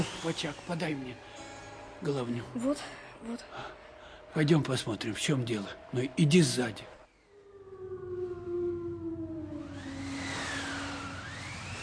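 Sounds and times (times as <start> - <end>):
speech: 0.2 - 1.4, 2.0 - 7.0
wolves howling: 4.4 - 11.8.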